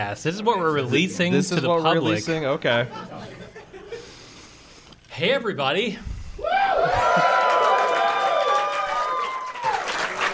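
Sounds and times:
speech: 0.0s - 3.5s, 5.2s - 7.2s
laughter: 2.7s - 4.3s, 6.6s - 7.8s
raucous theater crowd cheering: 6.4s - 10.3s.

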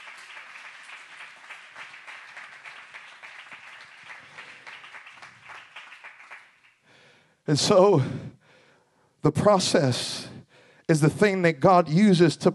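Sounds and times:
crowd clapping: 0.0s - 7.0s
speech: 7.5s - 8.3s, 9.2s - 10.3s, 10.9s - 12.5s.

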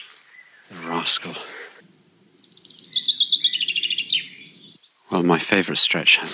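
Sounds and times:
small bird singing a fast high-pitched trill: 0.0s - 5.0s
faint low rumble: 0.7s - 4.8s
speech: 0.8s - 1.6s, 5.1s - 6.3s.

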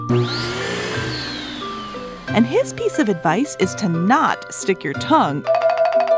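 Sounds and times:
dental saliva suction vacuum hissing: 0.0s - 3.9s
speech: 0.1s - 0.6s, 2.3s - 5.6s.

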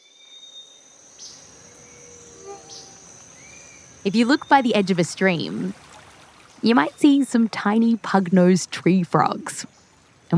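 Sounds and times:
chirping insects in a rainforest in Panama: 0.0s - 8.0s
speech: 4.0s - 5.9s, 6.6s - 10.3s.

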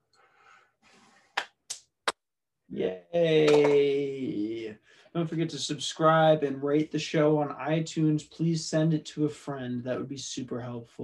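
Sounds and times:
speech: 2.7s - 4.4s, 5.2s - 11.0s
small audience round of applause: 3.4s - 3.9s.

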